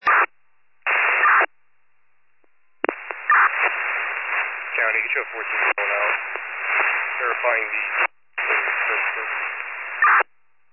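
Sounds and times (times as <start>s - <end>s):
radio static: 0.0s - 0.3s, 0.9s - 1.5s, 2.8s - 10.3s
speech: 7.4s - 8.0s.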